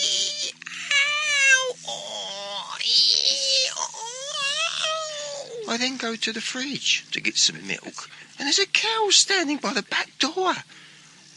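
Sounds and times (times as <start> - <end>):
donkey braying: 0.0 - 5.8
speech: 5.7 - 10.8.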